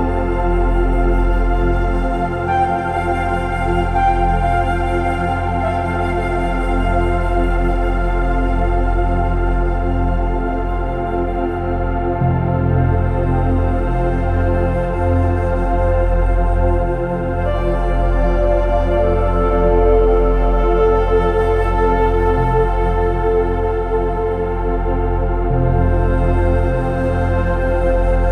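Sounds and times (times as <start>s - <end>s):
soft soothing background music with nature sounds: 0.0s - 28.3s.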